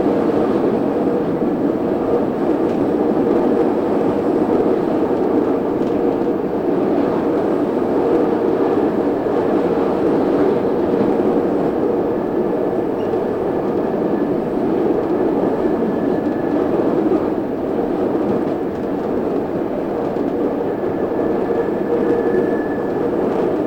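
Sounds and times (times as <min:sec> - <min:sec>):
train: 0:00.0 - 0:23.6.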